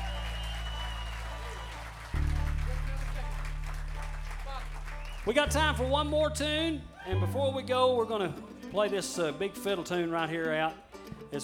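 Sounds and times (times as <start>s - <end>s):
audience applause at live festival: 0.0s - 6.1s
speech: 5.3s - 11.4s.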